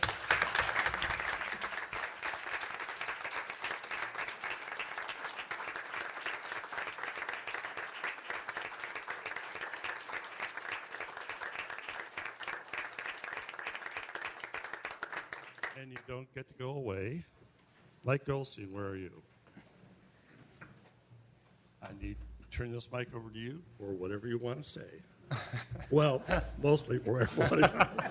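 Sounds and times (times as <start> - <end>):
audience round of applause: 0.0 - 15.8
speech: 15.8 - 17.4, 18.0 - 19.2, 22.6 - 28.0
laughter: 25.3 - 28.0.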